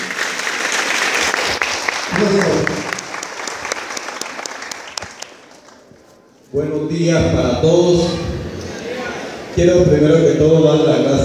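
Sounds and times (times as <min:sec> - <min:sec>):
audience applause at a formal assembly: 0:00.0 - 0:05.9
speech: 0:02.2 - 0:02.9, 0:06.5 - 0:08.3, 0:09.6 - 0:11.2.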